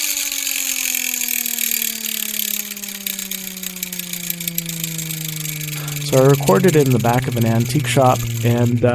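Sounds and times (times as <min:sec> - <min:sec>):
spun vintage Dick Tracy toy gun siren from the 50s: 0:00.0 - 0:08.9
speech: 0:06.1 - 0:08.9.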